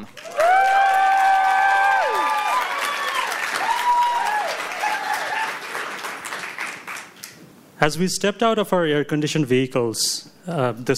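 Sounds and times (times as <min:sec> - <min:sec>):
audience round of applause for first speaker: 0:00.0 - 0:07.4
speech: 0:07.8 - 0:10.9.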